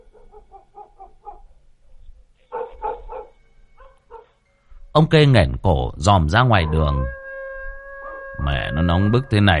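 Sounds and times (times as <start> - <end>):
neighbour's dog barking and howling: 0.0 - 1.6, 2.4 - 4.4, 6.3 - 9.5
speech: 5.0 - 7.2, 8.4 - 9.5.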